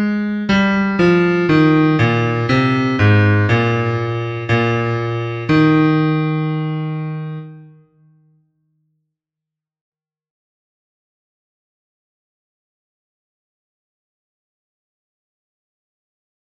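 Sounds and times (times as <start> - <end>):
bass: 0.5 - 6.6.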